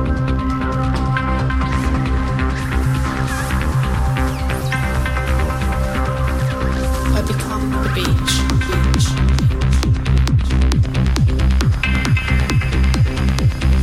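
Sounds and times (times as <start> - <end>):
electro music: 0.0 - 13.8.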